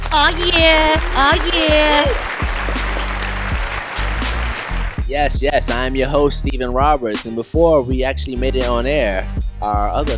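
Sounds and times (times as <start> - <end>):
audience applause: 0.0 - 5.1
speech: 0.2 - 2.2, 5.1 - 10.1.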